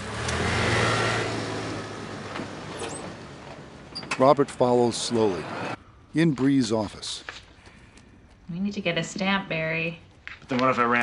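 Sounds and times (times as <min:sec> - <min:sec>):
car peeling out and accelerating away: 0:00.0 - 0:05.8
speech: 0:04.2 - 0:07.4, 0:08.5 - 0:11.0.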